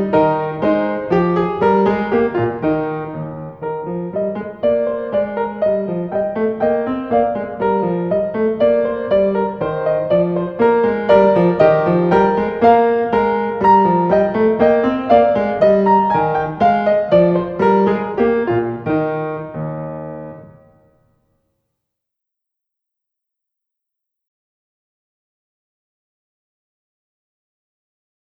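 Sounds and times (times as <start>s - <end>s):
gavotte accompaniment: 0.0s - 20.9s.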